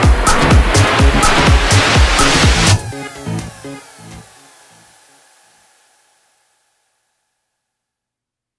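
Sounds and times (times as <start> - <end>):
disco music: 0.0 - 5.3.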